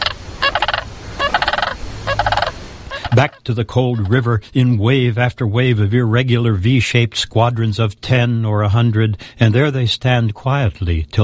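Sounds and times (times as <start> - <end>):
cranes' purring croo cry: 0.0 - 4.3
speech: 3.2 - 11.2.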